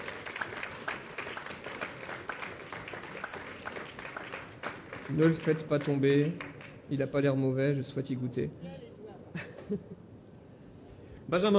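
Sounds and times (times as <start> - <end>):
audience applause: 0.0 - 6.8
speech: 5.1 - 8.8, 9.7 - 10.0, 11.3 - 11.5.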